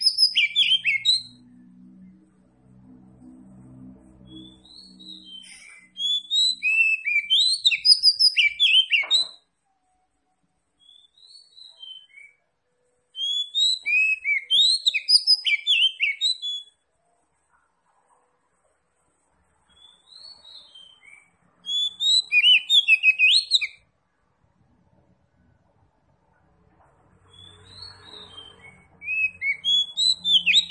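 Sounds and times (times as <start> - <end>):
Oriental magpie-robin song: 0.0 - 1.5, 4.2 - 9.5, 10.8 - 12.4, 13.1 - 16.8, 19.7 - 23.9, 27.2 - 30.7.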